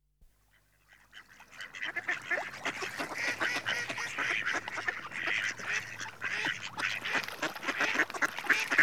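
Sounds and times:
male Mallard Anas platyrhynchos giving rasping nasal calls: 0:01.7 - 0:08.7.

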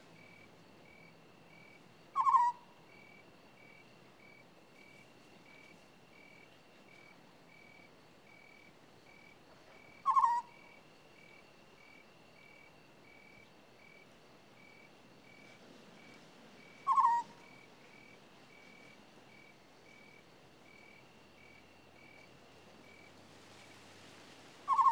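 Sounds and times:
African scops owl rolling purrs: 0:10.1 - 0:10.4, 0:16.9 - 0:17.3, 0:24.7 - 0:24.9.

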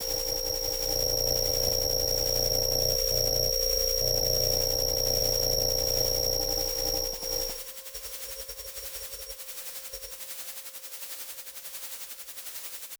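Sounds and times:
Kyma synthesized transmission apparatus sound: 0:00.0 - 0:07.6.

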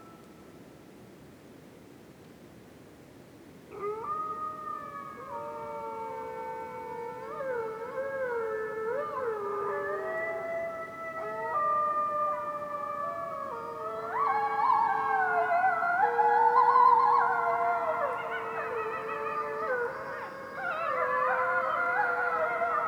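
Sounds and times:
gray wolves howling in a winter forest at night: 0:03.7 - 0:22.8.

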